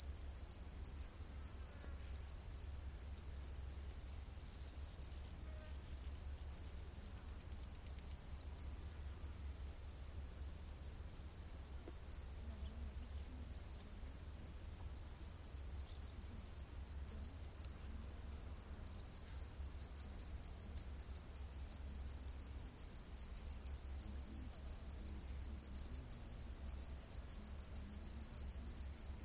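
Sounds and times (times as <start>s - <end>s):
cricket chirping: 0.0s - 29.2s.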